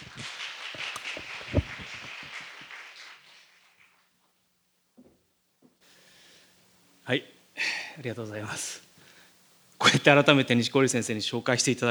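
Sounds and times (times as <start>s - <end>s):
crowd applause welcoming a speaker: 0.0s - 3.7s
speech: 7.1s - 8.9s, 10.0s - 11.8s.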